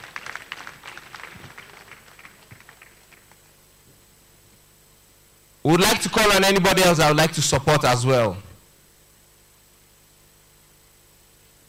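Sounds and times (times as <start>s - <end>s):
audience applause: 0.0s - 3.5s
speech: 5.7s - 8.5s.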